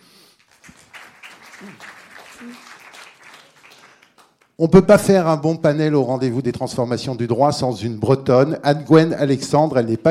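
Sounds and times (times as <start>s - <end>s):
audience applause: 0.4s - 4.6s
speech: 1.6s - 2.7s, 4.6s - 10.1s.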